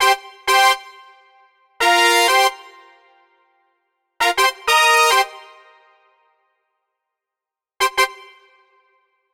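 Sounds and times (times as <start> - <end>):
brass instruments: 0.0 - 1.2, 1.8 - 3.2, 4.2 - 6.1, 7.8 - 9.0.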